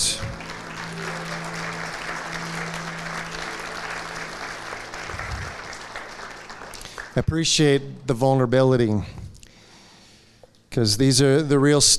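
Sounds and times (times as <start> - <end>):
audience applause: 0.0 - 7.3
speech: 7.2 - 9.2, 10.8 - 11.9.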